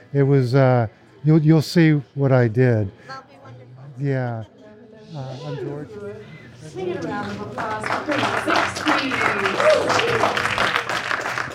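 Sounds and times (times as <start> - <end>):
speech: 0.1 - 3.3, 4.0 - 10.8
audience round of applause: 7.2 - 11.5.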